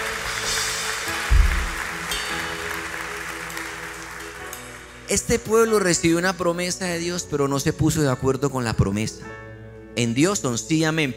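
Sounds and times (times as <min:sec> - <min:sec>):
audience applause: 0:00.0 - 0:05.0
speech: 0:05.1 - 0:11.1.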